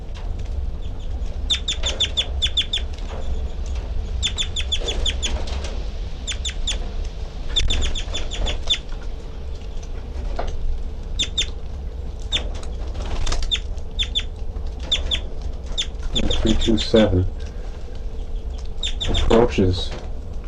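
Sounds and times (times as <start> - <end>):
low hum: 0.0 - 20.4
high ticking bird chirps: 1.5 - 2.9, 4.2 - 5.3, 6.2 - 6.8, 7.5 - 8.8, 11.2 - 11.6, 13.4 - 14.3, 18.2 - 19.4
caged bird wings flapping: 1.6 - 10.6, 12.2 - 17.5
speech: 16.7 - 17.5, 19.6 - 20.0.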